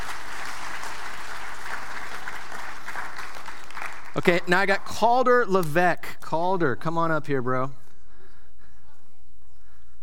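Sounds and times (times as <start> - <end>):
audience applause: 0.0 - 5.0
speech: 4.2 - 7.8.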